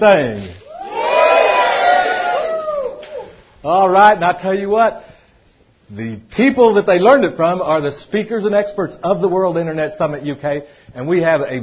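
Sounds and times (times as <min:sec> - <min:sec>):
speech: 0:00.0 - 0:00.6, 0:03.6 - 0:05.1, 0:05.9 - 0:11.6
enthusiastic crowd cheering: 0:00.7 - 0:03.4.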